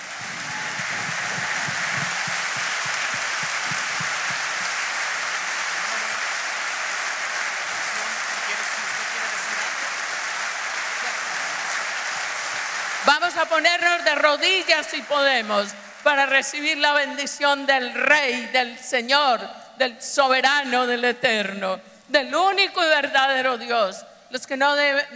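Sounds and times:
crowd applauding: 0.0s - 16.6s
speech: 13.4s - 25.1s.

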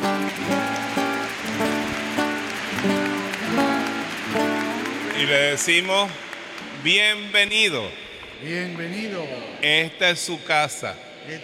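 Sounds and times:
audience applauding: 0.0s - 7.6s
speech: 5.2s - 11.4s.

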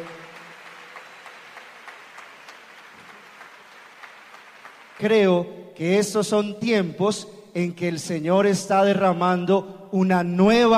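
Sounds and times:
audience applause: 0.0s - 5.2s
speech: 5.0s - 10.7s.

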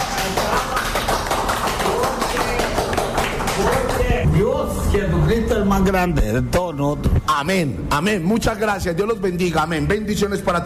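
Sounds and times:
audience applause: 0.0s - 4.2s
speech: 4.4s - 10.6s.

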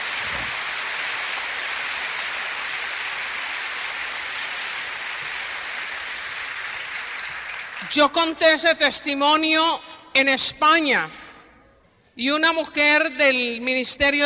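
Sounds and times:
applause: 0.0s - 8.8s
speech: 7.9s - 11.2s, 12.2s - 14.2s.

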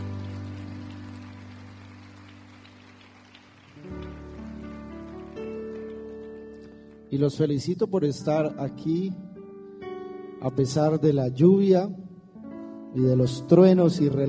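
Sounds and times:
audience applause: 0.0s - 7.1s
sustained keyboard chords: 0.0s - 14.2s
speech: 7.1s - 9.3s, 10.4s - 12.0s, 12.9s - 14.2s.

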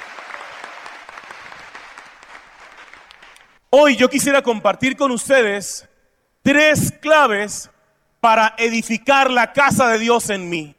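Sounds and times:
audience applause: 0.0s - 3.6s
speech: 3.7s - 10.7s.

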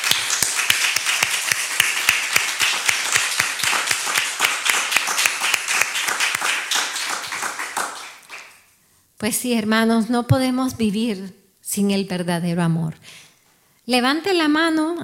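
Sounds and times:
audience applauding: 0.0s - 8.6s
speech: 9.2s - 13.2s, 13.9s - 15.0s.

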